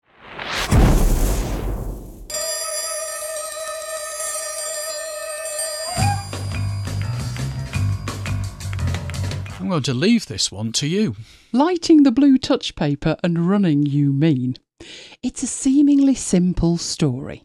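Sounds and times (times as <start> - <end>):
self-destruct explosion sound effect: 0.0 - 2.4
steady sustained electronic tone: 2.3 - 7.4
rhythmic musical passage with heavy bass: 6.1 - 9.6
speech: 9.7 - 17.4.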